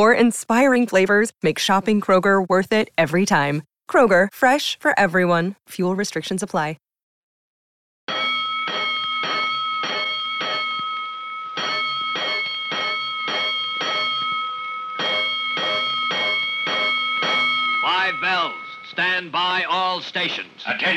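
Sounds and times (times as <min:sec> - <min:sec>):
speech: 0:00.0 - 0:06.8, 0:19.0 - 0:20.9
fire alarm bell clanging: 0:08.1 - 0:20.0.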